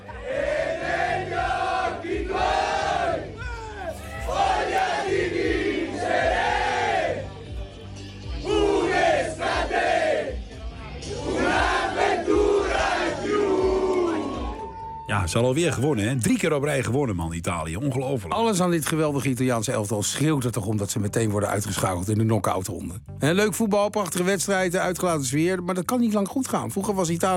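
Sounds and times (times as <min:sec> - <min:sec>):
football supporters singing with national team: 0:00.0 - 0:03.5, 0:04.1 - 0:07.6, 0:08.3 - 0:14.7
low crowd roar: 0:00.0 - 0:07.2, 0:08.4 - 0:10.3, 0:11.1 - 0:15.1
speech: 0:15.3 - 0:27.3.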